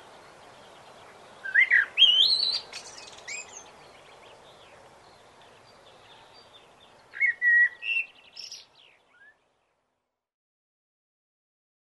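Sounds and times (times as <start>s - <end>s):
common blackbird singing fluted whistles: 1.4s - 3.6s, 7.2s - 9.4s.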